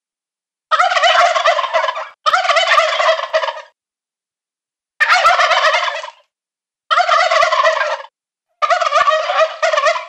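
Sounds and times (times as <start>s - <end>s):
male turkeys gobbling: 0.7s - 3.8s, 5.0s - 6.3s, 6.9s - 10.0s.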